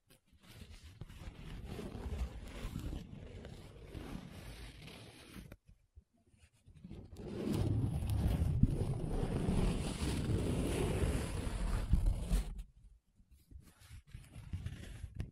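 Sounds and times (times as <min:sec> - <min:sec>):
paper being rubbed and scratched: 0:00.1 - 0:05.6, 0:06.6 - 0:12.7, 0:13.6 - 0:15.3.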